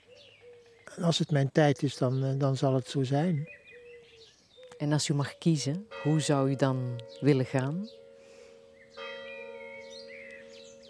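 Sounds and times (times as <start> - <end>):
speech: 1.0 - 3.6, 4.8 - 8.0
church bell striking the hour: 5.8 - 10.8.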